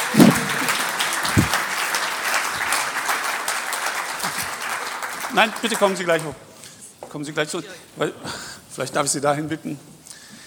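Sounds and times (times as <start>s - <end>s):
audience applause: 0.0s - 6.3s
speech: 5.4s - 6.5s, 7.1s - 9.9s.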